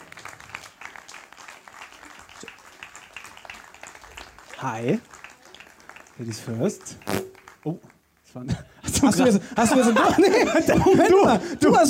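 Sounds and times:
crowd clapping: 0:00.0 - 0:08.3
speech: 0:04.6 - 0:05.2, 0:06.2 - 0:11.8
laughter: 0:08.8 - 0:11.8.

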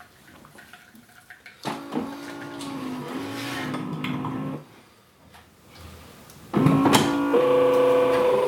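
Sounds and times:
coffee machine brewing coffee: 0:01.6 - 0:04.6, 0:06.6 - 0:08.4.

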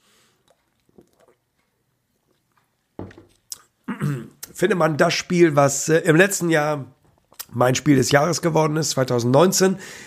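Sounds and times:
person sipping a drink with wet mouth sounds: 0:00.0 - 0:04.5, 0:07.2 - 0:07.6
person gulping a drink: 0:00.2 - 0:04.6, 0:07.0 - 0:07.6
speech: 0:04.1 - 0:07.0, 0:07.6 - 0:10.0.

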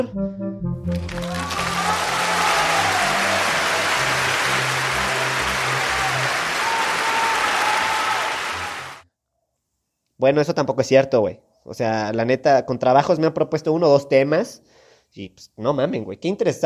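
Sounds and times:
speech: 0:00.0 - 0:01.2, 0:10.2 - 0:16.6
applause: 0:00.9 - 0:09.0.

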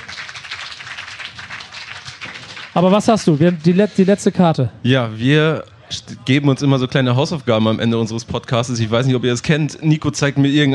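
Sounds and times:
short applause: 0:00.0 - 0:03.8
speech: 0:02.8 - 0:10.7.

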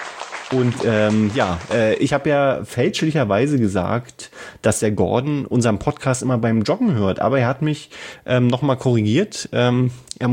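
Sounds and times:
applause: 0:00.0 - 0:02.3
speech: 0:00.5 - 0:10.3.

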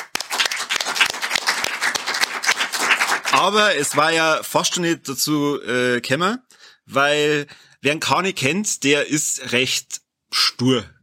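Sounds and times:
applause: 0:00.0 - 0:04.2
speech: 0:03.4 - 0:11.0.

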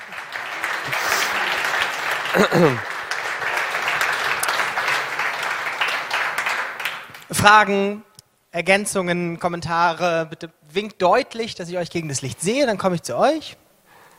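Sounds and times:
audience applause: 0:00.0 - 0:07.3
speech: 0:02.3 - 0:02.9, 0:07.4 - 0:13.6.

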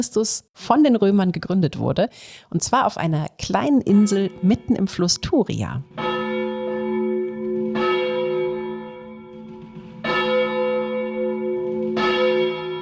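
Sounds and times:
speech: 0:00.0 - 0:06.0
cathedral church bells ringing: 0:03.7 - 0:12.8.

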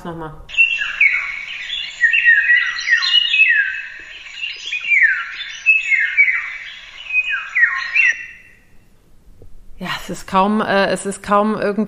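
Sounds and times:
speech: 0:00.0 - 0:00.6, 0:09.8 - 0:11.8
bird singing a fluting whistled song: 0:00.5 - 0:08.8.

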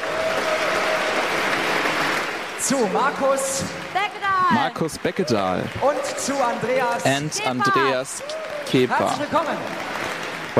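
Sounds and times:
audience applause and cheers: 0:00.0 - 0:10.5
speech: 0:02.7 - 0:09.9.

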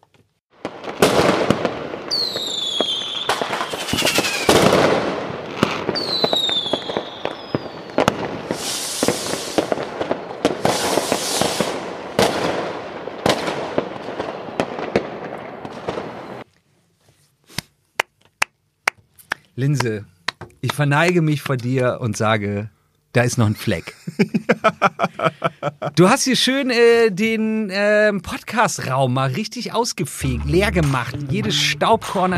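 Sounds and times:
fireworks barrage of rapid crackling bangs: 0:00.5 - 0:16.4
rising whistling streaks of fireworks: 0:02.2 - 0:04.6, 0:06.0 - 0:08.0
speech: 0:19.6 - 0:20.1, 0:20.7 - 0:32.3
laughter: 0:23.8 - 0:26.0.

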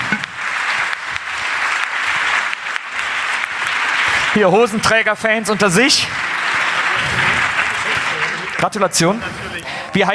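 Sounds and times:
audience applause for the winner: 0:00.0 - 0:10.1
laughter: 0:04.0 - 0:10.1
speech: 0:04.4 - 0:06.2, 0:08.6 - 0:10.1.

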